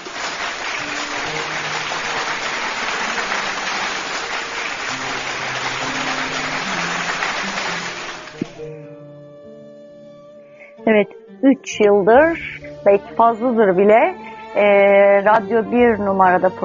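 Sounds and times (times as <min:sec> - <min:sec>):
applause: 0:00.0 - 0:08.7
speech: 0:10.9 - 0:16.6.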